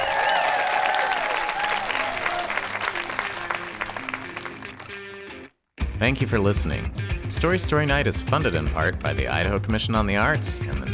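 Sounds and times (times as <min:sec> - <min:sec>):
audience applause for a chorus: 0:00.0 - 0:05.3
people cheering: 0:00.0 - 0:05.3
speech: 0:06.0 - 0:10.9.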